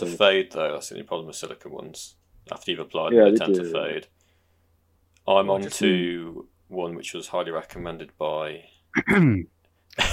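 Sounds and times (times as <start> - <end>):
speech: 0.0 - 4.2, 5.3 - 10.1
voiced throaty sound: 9.0 - 9.5
harsh breathy cough: 9.0 - 10.1.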